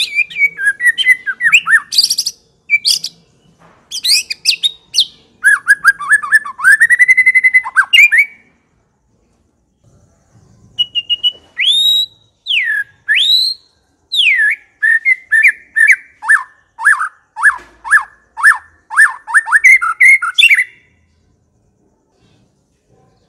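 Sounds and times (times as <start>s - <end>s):
white-rumped shama whistling song: 0.0s - 3.2s, 4.0s - 8.4s, 10.1s - 20.9s.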